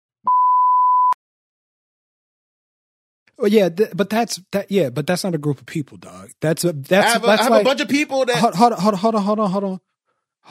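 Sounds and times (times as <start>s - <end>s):
censor bleep sound effect: 0.3s - 1.2s
speech: 3.4s - 10.4s.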